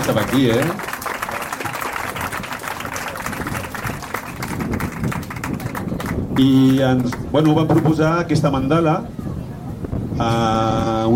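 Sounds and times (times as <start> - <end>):
speech: 0.0 - 0.9, 6.4 - 9.2, 10.2 - 11.1
audience applause for the artists at a Festa Major event: 0.0 - 8.0.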